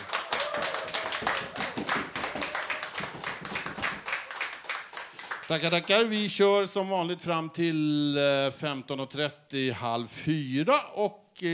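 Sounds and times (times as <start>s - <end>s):
audience clapping: 0.0s - 6.2s
speech: 5.5s - 11.5s.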